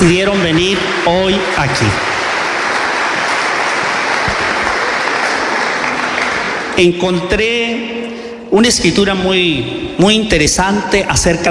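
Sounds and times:
speech: 0:00.0 - 0:02.2, 0:06.8 - 0:11.4
audience applause: 0:00.0 - 0:06.8.

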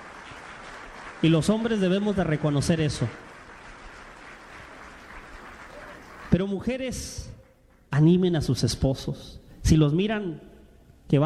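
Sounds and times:
audience clapping for the women: 0:00.0 - 0:07.9
speech: 0:01.2 - 0:03.3, 0:06.5 - 0:07.3, 0:07.9 - 0:10.5, 0:11.1 - 0:11.2.

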